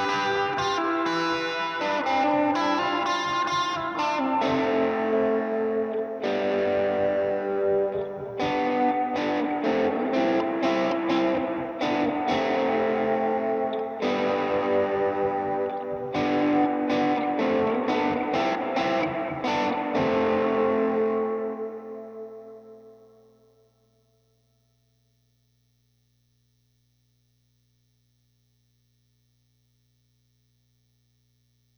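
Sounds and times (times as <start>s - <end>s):
guitar: 0.0s - 24.1s.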